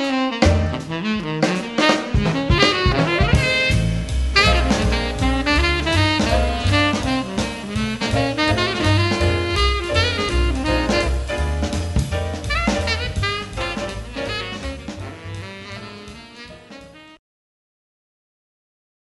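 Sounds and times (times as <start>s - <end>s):
quartet playing: 0.3s - 11.4s, 12.4s - 16.2s.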